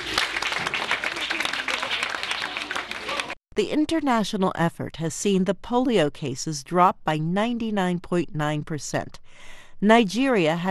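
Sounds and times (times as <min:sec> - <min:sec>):
group clapping: 0:00.0 - 0:03.4
speech: 0:03.6 - 0:10.6.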